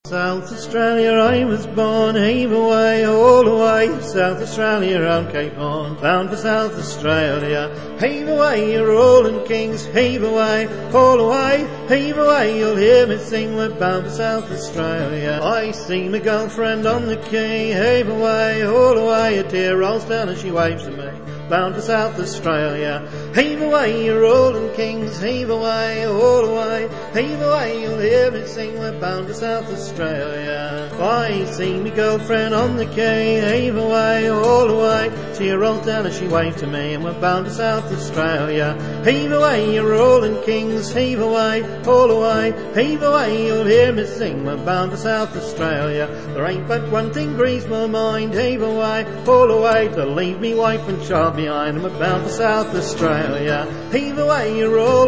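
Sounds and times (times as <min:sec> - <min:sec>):
person singing a traditional sea song: 0:00.0 - 0:55.0.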